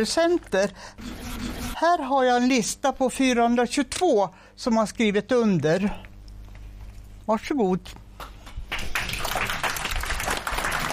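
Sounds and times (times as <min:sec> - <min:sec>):
speech: 0:00.0 - 0:06.1, 0:07.3 - 0:08.3
audience applause: 0:08.7 - 0:10.9.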